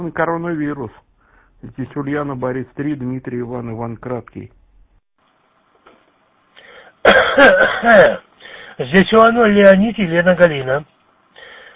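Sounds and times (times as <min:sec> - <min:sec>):
speech: 0:00.0 - 0:04.6, 0:07.0 - 0:08.2, 0:08.8 - 0:10.9
coughing and throat clearing over an amateur radio channel: 0:07.1 - 0:08.3.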